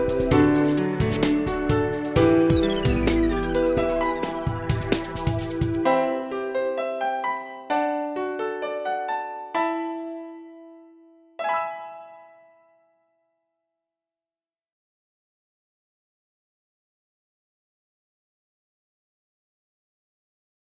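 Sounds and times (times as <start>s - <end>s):
piano: 0.0s - 13.3s.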